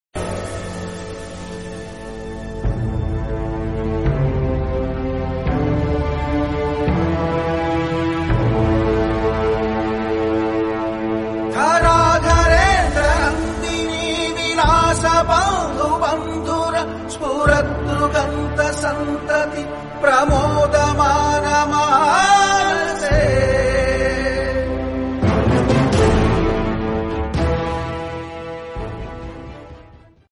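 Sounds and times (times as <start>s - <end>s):
Telugu background music: 0.1s - 30.3s.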